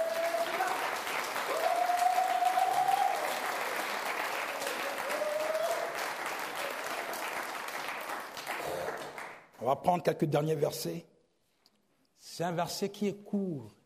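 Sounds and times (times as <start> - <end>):
church congregation applauding in praise of Jesus: 0.0 - 9.5
speech: 9.6 - 11.1, 12.4 - 13.8.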